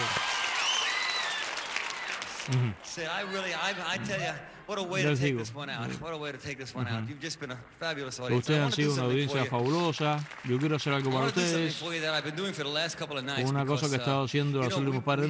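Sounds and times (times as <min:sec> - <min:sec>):
audience applauding at a live concert: 0:00.0 - 0:03.4, 0:08.8 - 0:12.7
speech: 0:02.5 - 0:15.2.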